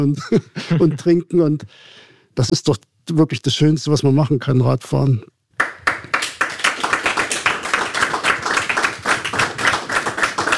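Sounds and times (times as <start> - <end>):
speech: 0.0 - 5.8
audience applause: 5.6 - 10.5.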